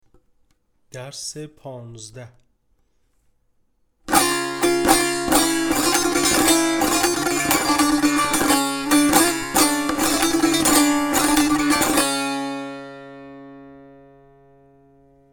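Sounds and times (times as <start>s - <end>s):
tanbur practice: 4.1s - 15.3s.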